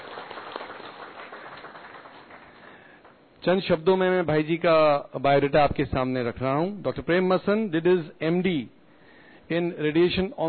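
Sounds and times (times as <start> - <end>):
audience applause: 0.0 - 2.9
speech: 3.4 - 8.8, 9.5 - 10.4.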